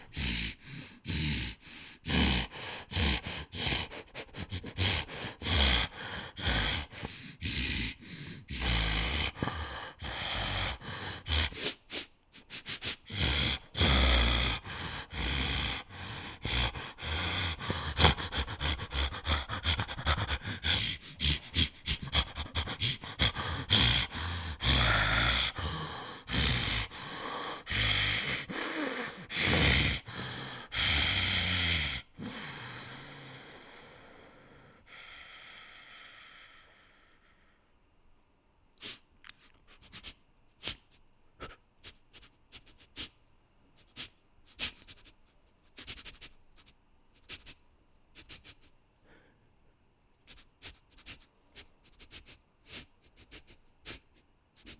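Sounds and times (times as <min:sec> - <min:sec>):
werewolf breathing: 0:00.0 - 0:37.6.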